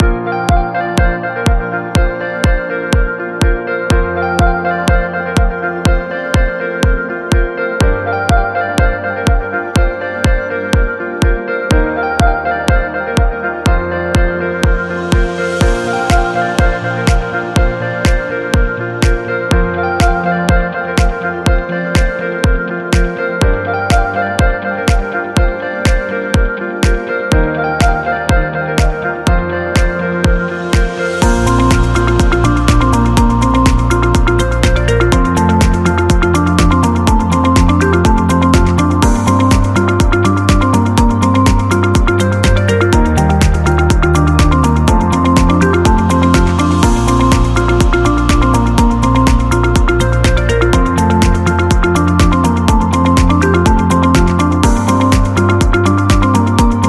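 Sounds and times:
happy commercial music: 0:00.0 - 0:56.8.

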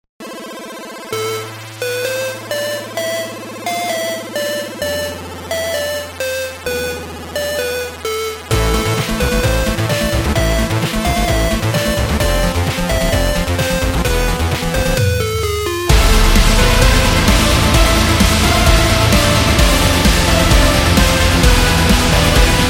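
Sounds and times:
8-bit metal music: 0:00.2 - 0:22.6.

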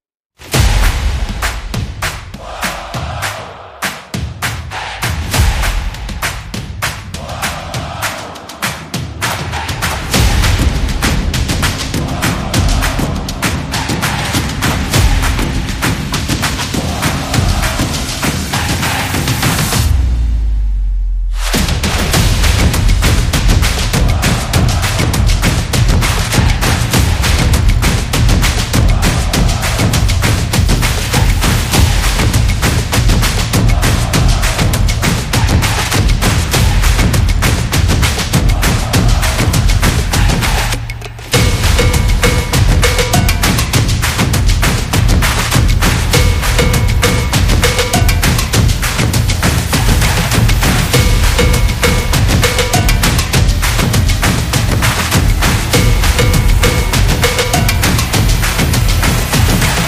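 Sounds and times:
stomping beat: 0:00.4 - 0:20.1, 0:21.4 - 0:59.8.

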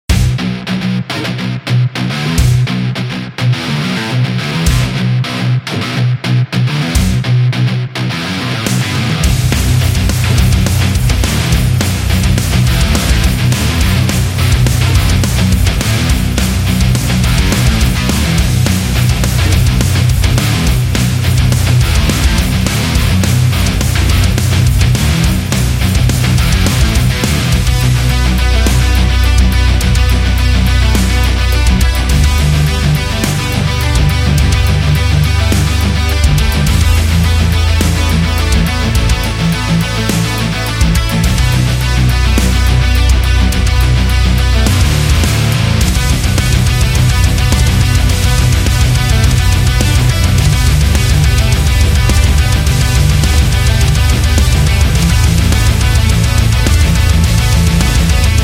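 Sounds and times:
metal music: 0:00.0 - 0:58.4.

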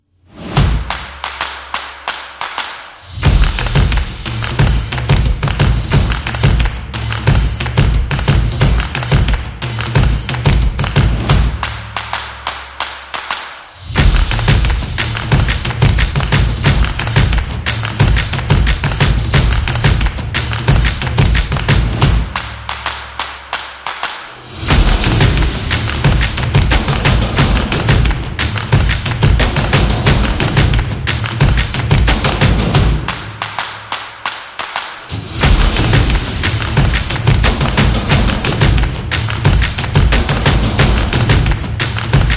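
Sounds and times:
percussion: 0:00.2 - 0:42.3.

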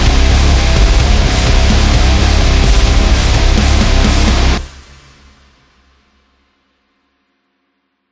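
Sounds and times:
aggressive metal music: 0:00.0 - 0:05.8.

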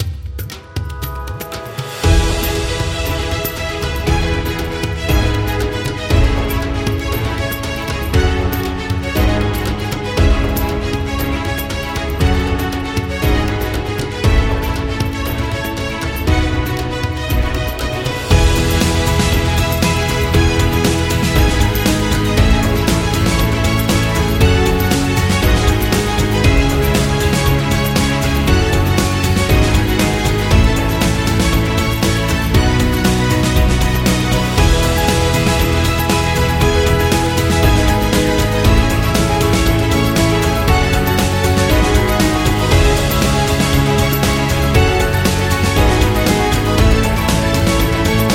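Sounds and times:
epic Indian music: 0:00.0 - 0:48.3.

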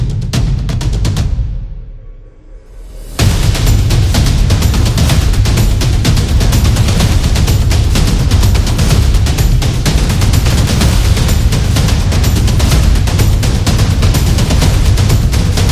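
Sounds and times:
tribal drums action music: 0:00.0 - 0:01.8, 0:03.0 - 0:15.7.

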